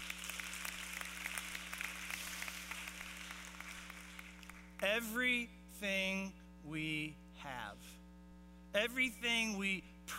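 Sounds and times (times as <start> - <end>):
audience applause: 0.0 - 4.8
faint low hum: 0.0 - 10.1
speech: 4.9 - 8.0, 8.7 - 10.1.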